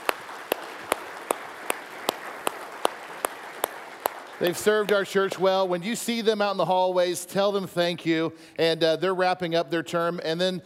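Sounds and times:
audience applause: 0.0 - 5.7
speech: 4.4 - 10.6.

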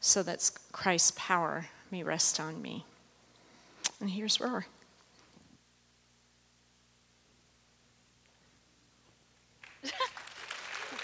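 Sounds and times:
speech: 0.0 - 2.9, 4.0 - 4.8
audience applause: 9.6 - 11.0.

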